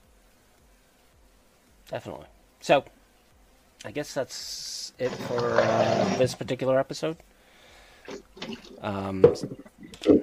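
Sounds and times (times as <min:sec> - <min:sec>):
speech: 0:01.9 - 0:03.0, 0:03.8 - 0:07.3, 0:08.1 - 0:10.2
water running while washing out a cup: 0:05.0 - 0:06.5, 0:08.0 - 0:10.2.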